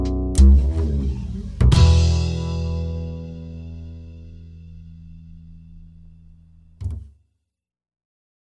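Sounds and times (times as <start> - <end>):
acoustic swing music: 0.0 - 6.0.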